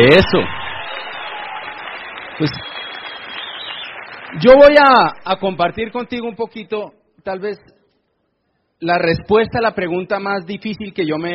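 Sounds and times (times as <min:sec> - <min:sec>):
speech: 0:00.0 - 0:00.6, 0:02.4 - 0:02.7, 0:04.3 - 0:07.7, 0:08.8 - 0:11.3
audience applauding: 0:00.0 - 0:06.0.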